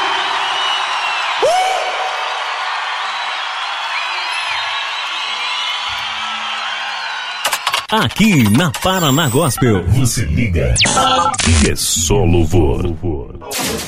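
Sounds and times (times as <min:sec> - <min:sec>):
audience applauding: 0:00.0 - 0:08.3
speech: 0:07.9 - 0:13.8.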